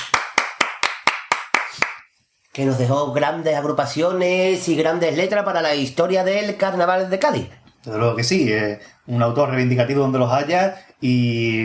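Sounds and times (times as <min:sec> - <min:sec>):
applause: 0:00.0 - 0:02.1
speech: 0:02.6 - 0:11.6.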